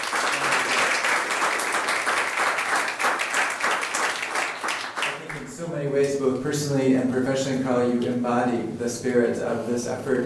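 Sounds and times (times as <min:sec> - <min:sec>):
audience applause: 0:00.0 - 0:05.4
speech: 0:06.0 - 0:10.2.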